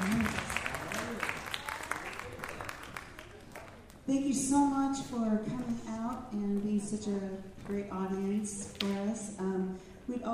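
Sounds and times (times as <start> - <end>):
faint audience applause for a high school jazz band: 0.0 - 3.9
speech: 4.1 - 10.3.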